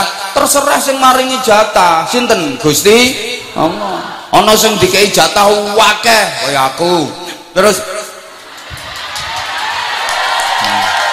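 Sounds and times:
speech: 0.4 - 8.0
crowd cheering and shouting: 8.3 - 11.1.

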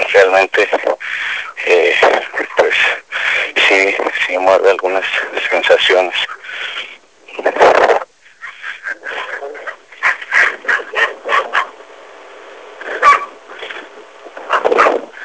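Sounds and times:
speech: 0.2 - 6.7, 7.4 - 8.0
dogs barking: 8.3 - 11.8, 12.8 - 13.8, 14.4 - 15.2.

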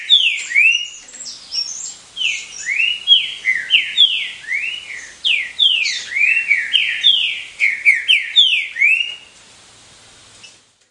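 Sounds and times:
Green-winged saltator singing: 0.0 - 9.4.

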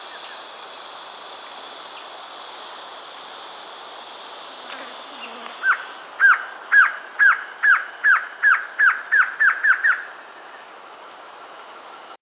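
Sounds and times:
Glossy antshrike Sakesphorus luctuosus luctuosus slurred calls: 4.4 - 10.1.

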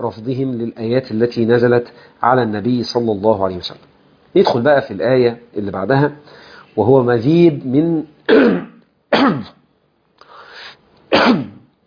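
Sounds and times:
speech: 0.0 - 9.6, 11.1 - 11.6
speaker with a muffled voice clearing throat: 8.3 - 9.6, 11.1 - 11.7
speaker with a muffled voice coughing: 8.3 - 9.6, 11.1 - 11.7.

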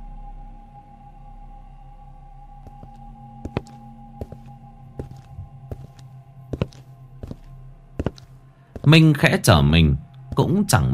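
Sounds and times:
clomping footsteps on a boat deck: 2.7 - 9.2
speech: 8.9 - 10.9.

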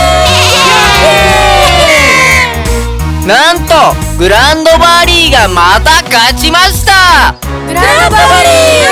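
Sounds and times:
goats bleating during a fight between goats: 0.1 - 2.6
speech: 3.9 - 8.8.

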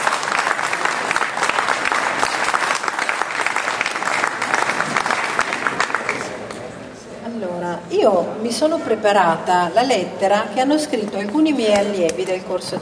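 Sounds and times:
audience applause at a 2011 primary election event in Como, Italy: 0.0 - 6.6
speech: 8.0 - 12.8.

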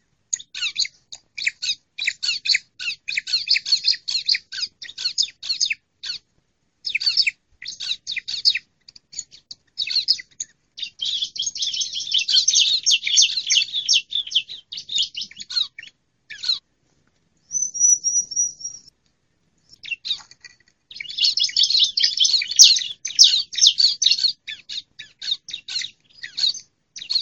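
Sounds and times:
female bar-winged prinia calling: 0.3 - 16.6, 17.4 - 18.9, 19.6 - 27.2.

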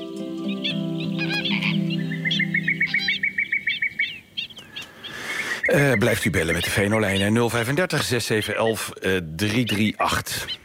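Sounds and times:
sharp repeated bird notes: 0.1 - 8.8, 9.4 - 10.6
flamingos and wetland birds honking near El Saler: 0.4 - 8.8
high wetland bird chirps and calls near El Saler: 0.5 - 7.4, 9.4 - 10.6
speech: 5.7 - 10.6.

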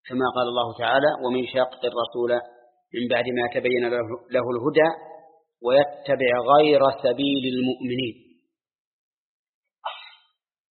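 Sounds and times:
speech: 0.1 - 8.2
sneeze during a religious lecture: 9.8 - 10.3.

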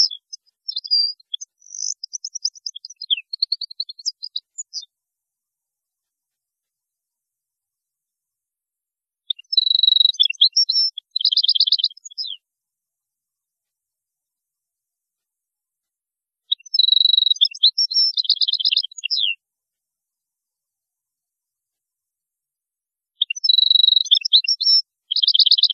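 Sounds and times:
European goldfinch singing: 0.0 - 4.9, 9.3 - 12.4, 16.5 - 19.4, 23.2 - 25.7.

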